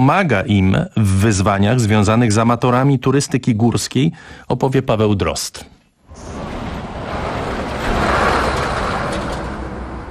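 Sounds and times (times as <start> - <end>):
speech: 0.0 - 6.3
truck driving past toward the Georgian-Russian border: 6.0 - 10.0.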